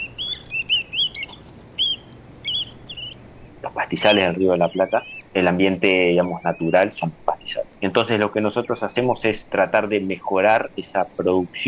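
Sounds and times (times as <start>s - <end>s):
American Golden-Plover whistled calls: 0.0s - 10.7s
speech: 3.8s - 11.6s.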